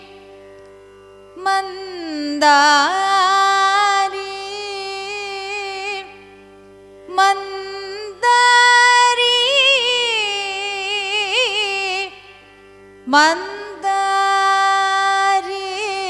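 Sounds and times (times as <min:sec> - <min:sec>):
Carnatic music in raga Mandari: 0:00.0 - 0:16.0.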